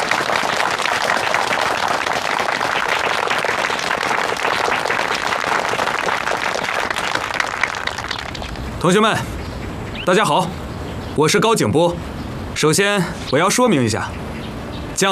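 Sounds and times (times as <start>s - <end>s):
large crowd applause welcoming a speaker: 0.0s - 8.7s
speech: 8.8s - 9.4s, 10.1s - 10.6s, 11.2s - 14.4s, 15.0s - 15.1s.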